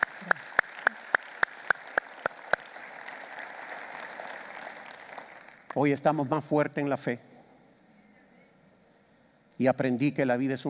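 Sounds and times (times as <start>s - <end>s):
audience applause: 0.0s - 5.8s
speech: 5.8s - 7.3s, 9.6s - 10.6s.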